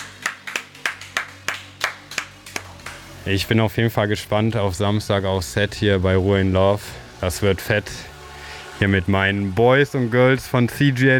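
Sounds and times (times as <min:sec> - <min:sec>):
audience applause: 0:00.0 - 0:03.0
speech: 0:03.2 - 0:08.1, 0:08.8 - 0:11.1.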